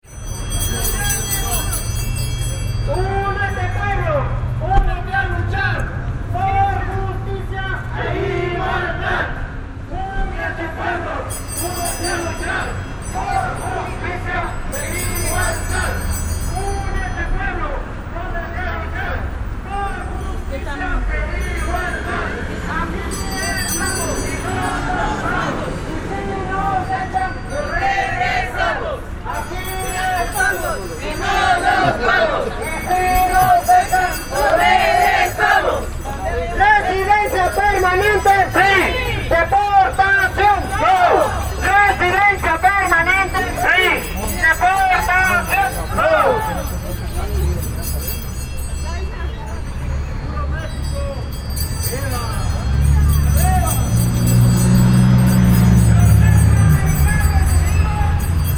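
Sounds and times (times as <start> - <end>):
protest crowd: 0.0 - 58.5.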